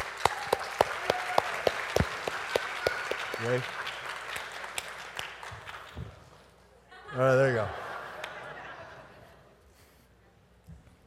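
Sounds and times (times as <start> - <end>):
church congregation clapping to welcome a couple: 0.0 - 6.5
speech: 3.4 - 3.8, 7.2 - 7.8
laughter: 6.9 - 9.7.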